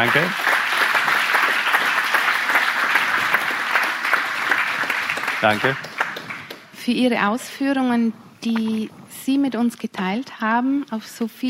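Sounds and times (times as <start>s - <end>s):
speech: 0.0s - 0.5s, 5.4s - 5.9s, 6.8s - 11.4s
audience applause: 0.0s - 6.8s.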